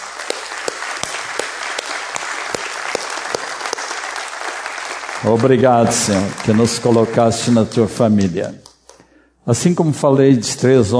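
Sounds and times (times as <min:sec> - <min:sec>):
audience applause: 0:00.0 - 0:07.8
speech: 0:05.2 - 0:08.6, 0:09.5 - 0:10.9.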